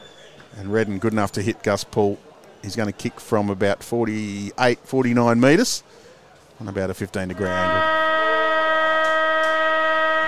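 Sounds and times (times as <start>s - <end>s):
speech: 0.6s - 6.0s, 6.6s - 7.9s
stadium siren ending the quarter: 7.4s - 10.2s.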